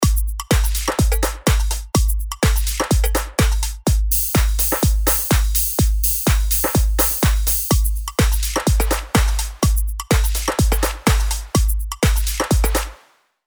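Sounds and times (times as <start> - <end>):
dance music: 0.0 - 13.1.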